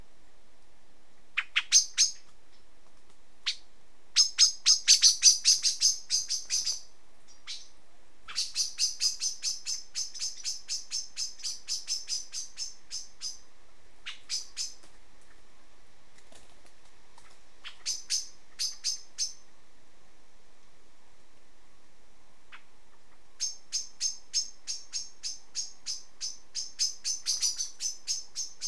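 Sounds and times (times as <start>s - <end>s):
common blackbird chinking calls: 1.4s - 2.6s, 3.4s - 13.4s, 14.0s - 14.8s, 17.6s - 19.4s, 22.5s - 28.6s.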